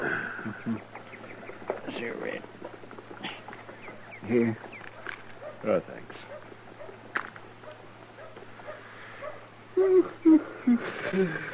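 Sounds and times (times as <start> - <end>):
speech: 0.4 - 0.9, 4.3 - 4.7, 5.6 - 6.3, 10.3 - 11.5
faint rustling: 0.9 - 9.5
dog whimpering: 9.2 - 11.5.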